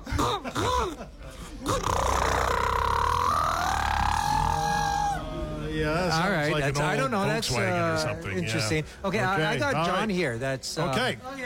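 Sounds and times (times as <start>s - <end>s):
speech: 0.2s - 2.2s, 5.8s - 11.4s
person vocally imitating a boat engine: 1.6s - 5.6s.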